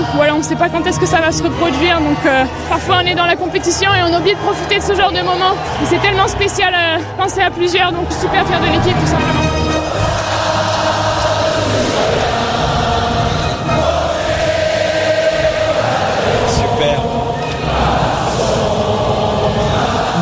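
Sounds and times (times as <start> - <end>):
team singing a national anthem: 0.0 - 20.2
speech: 0.2 - 9.6.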